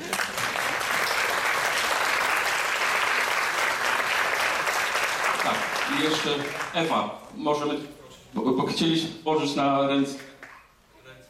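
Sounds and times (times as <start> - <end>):
applause: 0.0 - 6.9
speech: 5.5 - 10.3.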